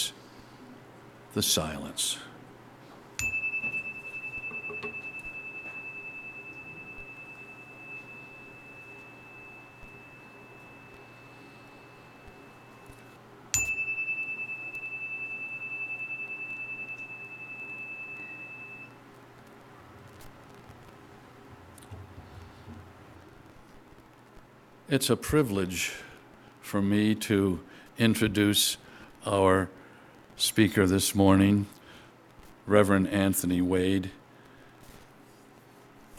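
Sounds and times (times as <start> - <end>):
speech: 1.3 - 2.3, 24.9 - 26.1, 26.7 - 29.8, 30.4 - 31.8, 32.7 - 34.2
meditation chime ringing: 3.2 - 19.0.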